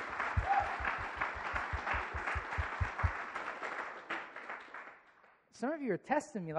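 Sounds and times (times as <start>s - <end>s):
rhythmic thump: 0.0s - 3.2s
audience clapping: 0.0s - 5.4s
speech: 5.6s - 6.5s.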